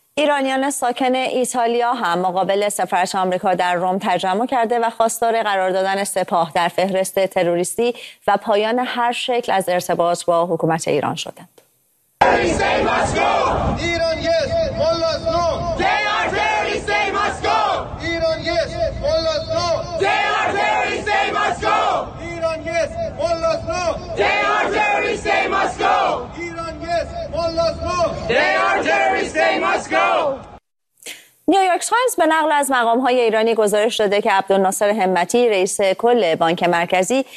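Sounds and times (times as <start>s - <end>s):
speech: 0.2s - 11.6s, 12.2s - 15.9s, 31.5s - 37.3s
protest rally crowd chanting slogans in unison: 12.2s - 13.8s, 15.5s - 30.6s.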